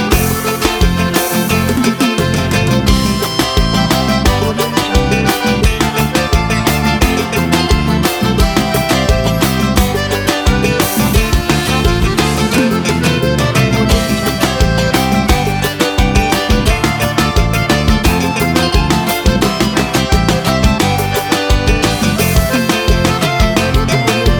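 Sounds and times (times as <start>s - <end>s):
forro sertanejo music: 0.0s - 24.3s.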